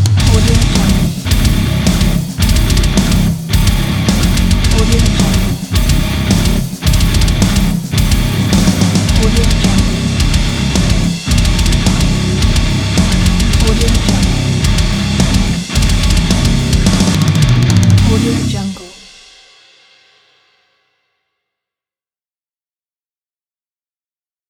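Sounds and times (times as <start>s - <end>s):
extreme metal bass logo: 0.2s - 18.6s.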